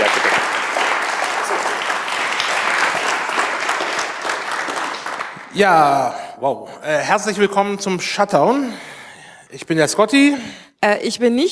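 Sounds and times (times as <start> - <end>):
audience applause: 0.0 - 5.8
speech: 5.6 - 8.9, 9.5 - 11.5.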